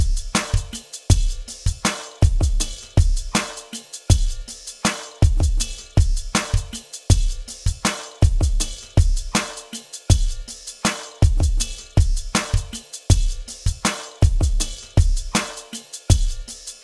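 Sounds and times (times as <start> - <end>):
drum beat: 0.0 - 16.8.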